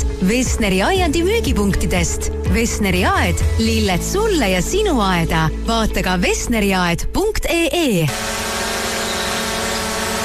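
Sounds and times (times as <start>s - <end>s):
speech: 0.2s - 8.6s
drone propellers buzzing: 8.1s - 10.2s.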